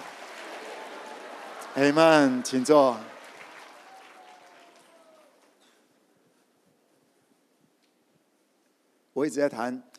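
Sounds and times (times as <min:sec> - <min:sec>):
audience applauding and cheering: 0:00.0 - 0:05.8
speech: 0:01.8 - 0:03.1, 0:09.2 - 0:09.9.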